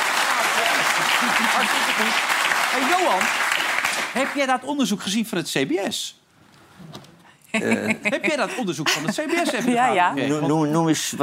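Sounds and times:
studio audience applause: 0.0 - 4.5
laughter: 0.6 - 2.2, 7.6 - 10.0
speech: 1.2 - 6.2, 6.8 - 11.2.

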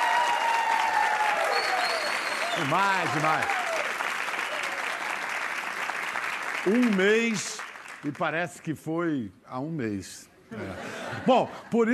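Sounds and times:
applause: 0.0 - 8.7
speech: 2.6 - 3.6, 6.6 - 11.9.

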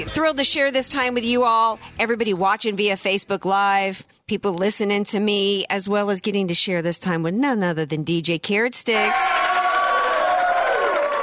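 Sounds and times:
speech: 0.0 - 9.6
applause: 9.3 - 11.2.

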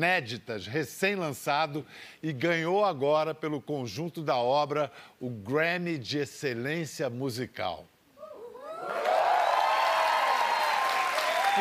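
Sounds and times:
speech: 0.0 - 7.9
studio audience applauding: 8.8 - 11.5.

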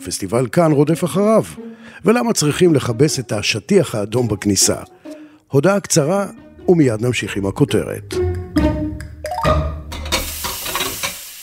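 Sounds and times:
speech: 0.0 - 8.7
dishes clinking and clattering while being washed: 9.9 - 11.2.

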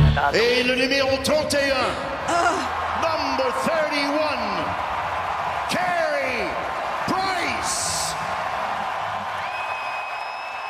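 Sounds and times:
speech: 0.2 - 4.8
arena crowd ovation for Carey Price at the Centre Bell: 2.2 - 10.6.

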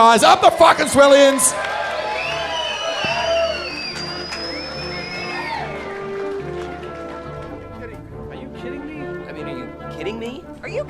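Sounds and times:
speech: 0.0 - 1.8
live crowd cheering and whooping: 0.4 - 6.8
scattered clapping: 1.6 - 8.0
high whistles: 2.0 - 6.0.

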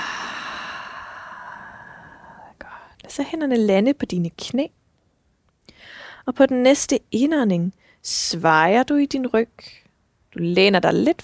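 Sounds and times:
slow breathy exhale during a guided stretching and breathing exercise: 0.0 - 2.6
speech: 3.1 - 4.8, 6.3 - 11.2.

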